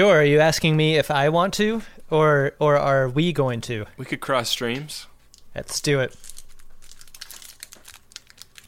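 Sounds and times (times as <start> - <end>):
speech: 0.0 - 6.3
trading card pack torn and crinkled open: 6.1 - 8.6.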